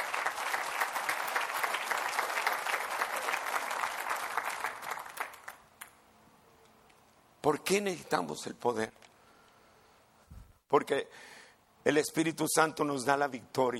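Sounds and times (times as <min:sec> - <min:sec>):
audience applause: 0:00.0 - 0:05.6
speech: 0:07.5 - 0:09.1, 0:10.7 - 0:13.7.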